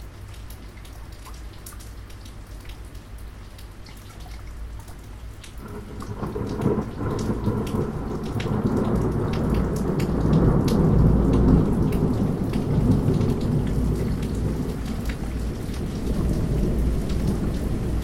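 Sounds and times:
thunderstorm: 5.6 - 18.0.

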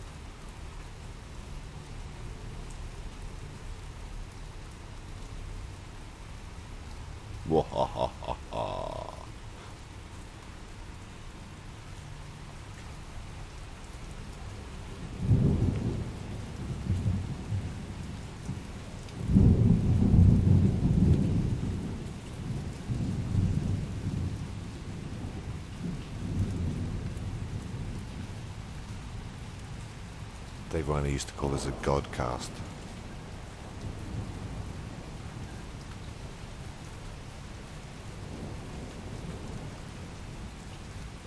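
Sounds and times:
steady rain: 0.0 - 41.2
speech: 7.5 - 8.5, 31.0 - 32.8
laughter: 7.5 - 9.3
deep rolling thunderclaps: 15.2 - 24.4, 31.5 - 35.5, 38.2 - 40.6.

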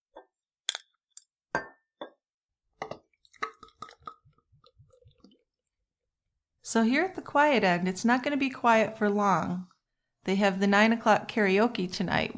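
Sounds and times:
beer pouring with glugs: 2.7 - 5.8
speech: 6.7 - 9.7, 10.3 - 12.3.

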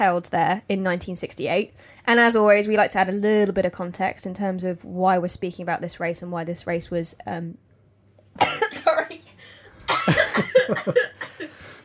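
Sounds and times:
speech: 0.0 - 7.7, 10.7 - 11.1
person coughing from ginger nut biscuit caught in the throat: 8.4 - 9.2, 9.9 - 11.7.

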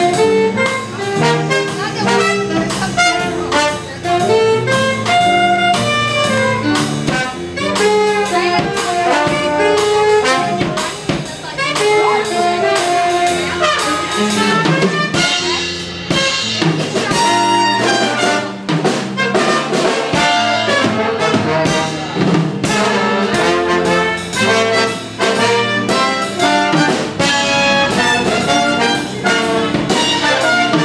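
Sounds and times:
jazz collective playing repeating phrase: 0.0 - 30.8.

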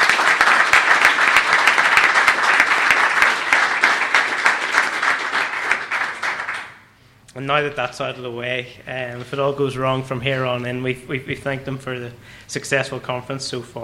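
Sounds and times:
audience round of applause: 0.0 - 6.9
speech: 7.5 - 13.8.

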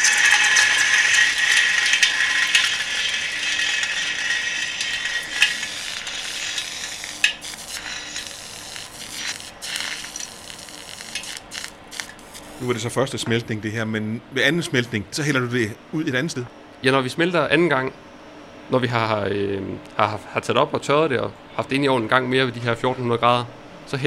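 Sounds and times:
hot glass crackling as it cracks in water: 0.0 - 12.6
speech: 12.6 - 18.1, 18.7 - 24.0.

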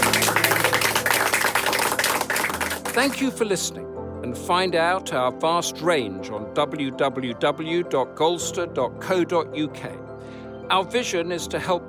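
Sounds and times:
audience applause: 0.0 - 3.2
speech: 3.0 - 10.1, 10.7 - 11.8.

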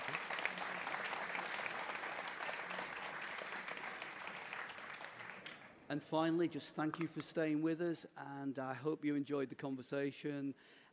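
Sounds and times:
audience applauding: 0.0 - 5.8
speech: 5.9 - 10.9.

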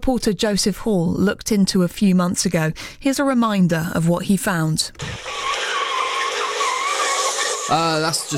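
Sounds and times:
speech: 0.0 - 5.4, 7.7 - 8.3
tyres screeching as a Mazda MX5 does donuts and drifts in a car park: 5.0 - 8.3.

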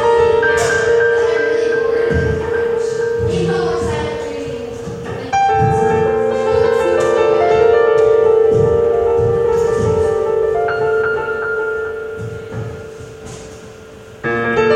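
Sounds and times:
piano noodling as ballet class lets out: 0.0 - 14.7
people conversing: 1.2 - 8.2.

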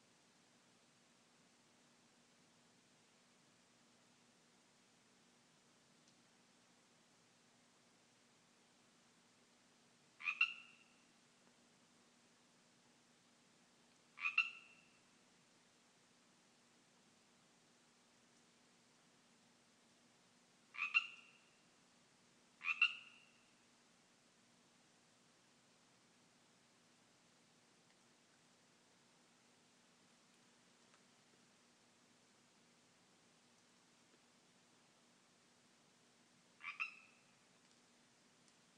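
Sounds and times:
Pacific tree frogs calling in a yard: 10.2 - 11.1, 14.2 - 15.0, 20.7 - 21.6, 22.6 - 23.5, 36.6 - 37.5.

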